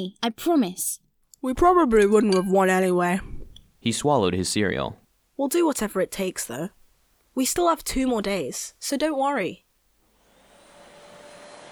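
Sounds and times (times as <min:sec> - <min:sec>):
speech: 0:00.0 - 0:06.8, 0:07.4 - 0:09.6
vacuum cleaner running: 0:10.3 - 0:11.7.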